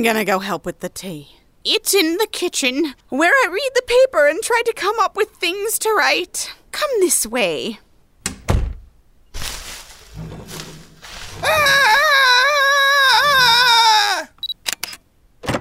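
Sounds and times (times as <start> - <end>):
speech: 0.0 - 7.8
rustling: 9.3 - 13.6
person screaming: 11.3 - 14.4
sharp clicks: 14.4 - 15.0.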